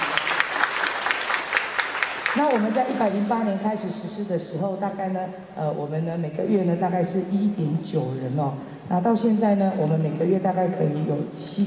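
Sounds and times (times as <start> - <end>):
audience applause: 0.0 - 3.0
speech: 2.4 - 11.6.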